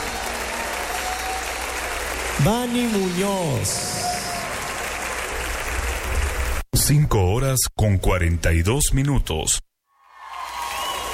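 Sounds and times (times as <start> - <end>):
worship congregation applauding and cheering during a service: 0.0 - 6.6, 10.0 - 11.1
speech: 2.4 - 4.0, 6.9 - 9.7.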